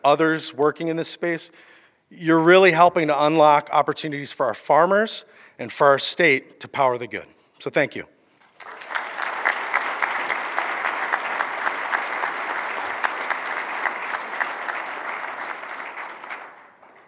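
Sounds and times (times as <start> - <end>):
speech: 0.0 - 8.2
audience applause: 8.4 - 17.0.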